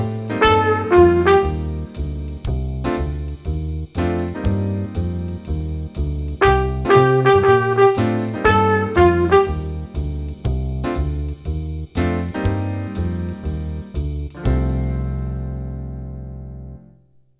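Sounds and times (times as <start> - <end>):
trumpet: 0.0 - 1.9, 6.4 - 10.0
jazz improvisation in C minor with jazz rhythms: 0.0 - 16.9.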